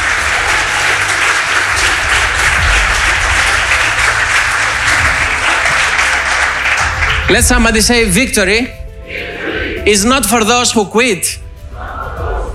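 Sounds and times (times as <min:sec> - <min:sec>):
audience clapping hands: 0:00.0 - 0:08.5
speech: 0:07.3 - 0:08.8, 0:09.8 - 0:11.4.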